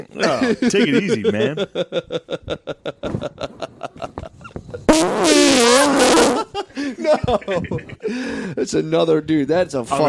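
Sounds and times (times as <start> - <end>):
speech: 0.0 - 3.6, 7.1 - 10.0
laughter: 0.2 - 4.5, 6.1 - 8.2
fart: 4.9 - 6.5.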